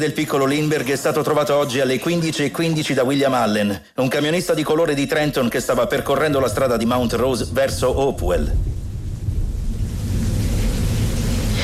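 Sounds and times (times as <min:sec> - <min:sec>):
speech: 0:00.0 - 0:08.8
heavy rain falling outside: 0:05.9 - 0:11.6.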